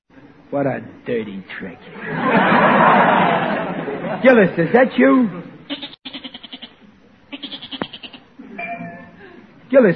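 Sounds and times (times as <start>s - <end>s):
speech: 0.5s - 5.5s, 9.7s - 9.9s
laughter: 1.9s - 4.8s
goat bleating: 5.7s - 8.3s.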